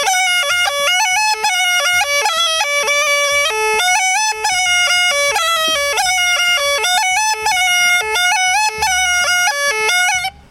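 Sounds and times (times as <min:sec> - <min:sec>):
small gajda playing ornamented melody line: 0:00.0 - 0:10.4.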